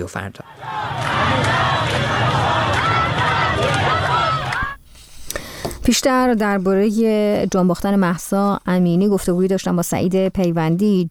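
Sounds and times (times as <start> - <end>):
speech: 0.0 - 2.3, 5.8 - 11.0
protesting women and men shouting: 0.4 - 4.8.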